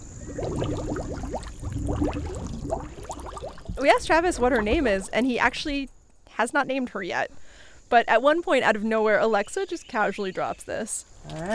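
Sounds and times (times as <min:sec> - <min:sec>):
snapping turtle blowing bubbles in water: 0:00.0 - 0:05.1
speech: 0:03.8 - 0:11.5.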